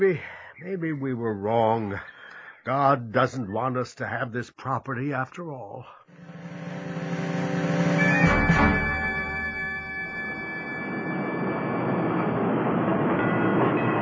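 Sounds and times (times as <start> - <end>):
speech: 0.0 - 6.4
interurban railway car passing by: 6.1 - 13.9
electric whine: 6.2 - 13.3.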